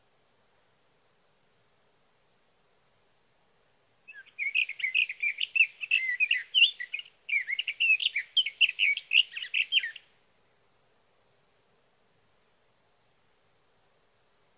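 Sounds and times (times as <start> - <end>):
sage thrasher warbling song: 4.1 - 10.0.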